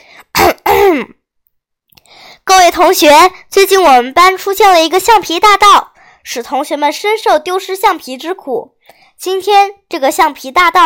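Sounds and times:
forceful throat clearing: 0.3s - 1.2s
speech: 1.0s - 1.2s, 2.5s - 10.8s.

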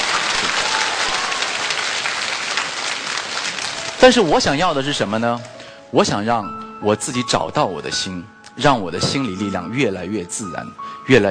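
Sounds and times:
audience applause: 0.0s - 5.0s
speech: 4.0s - 11.2s.

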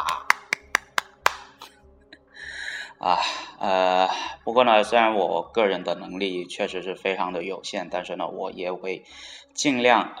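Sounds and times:
sharp hand claps: 0.0s - 1.7s
speech: 3.0s - 10.1s.

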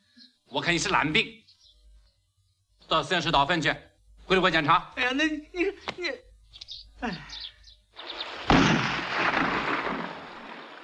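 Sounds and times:
speech: 0.5s - 1.4s, 2.9s - 6.2s, 7.0s - 7.2s
gunshot: 8.4s - 10.8s.

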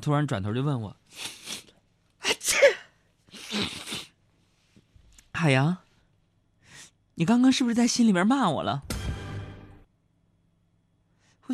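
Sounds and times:
speech: 0.0s - 1.7s, 5.4s - 5.8s, 7.2s - 8.9s
person sneezing: 1.2s - 4.2s.

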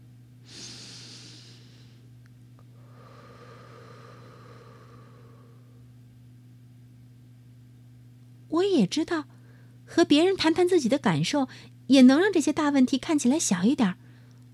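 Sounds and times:
low electrical hum: 0.0s - 14.5s
deep breath: 0.5s - 2.1s, 2.7s - 5.9s, 9.3s - 9.8s
speech: 8.5s - 9.3s, 9.9s - 14.0s.

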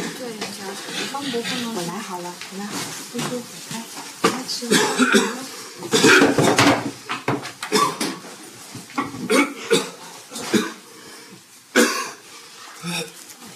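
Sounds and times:
speech: 1.2s - 6.5s
person coughing: 4.7s - 6.7s, 7.7s - 8.2s, 9.2s - 10.8s, 11.7s - 12.2s.

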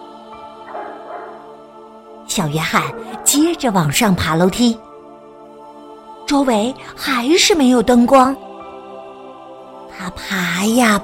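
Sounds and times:
neighbour's small dog barking happily: 0.7s - 1.5s
speech: 2.4s - 4.9s, 6.3s - 8.5s, 10.1s - 11.0s.

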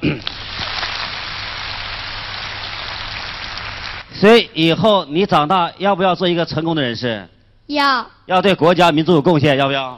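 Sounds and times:
crowd applauding: 0.2s - 4.1s
speech: 4.2s - 9.9s.

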